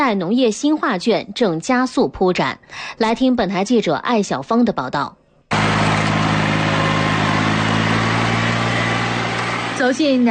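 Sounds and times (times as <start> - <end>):
speech: 0.1 - 5.2, 9.9 - 10.2
rice transplanter engine roaring in Nanniwan paddy fields during planting season: 5.5 - 10.2.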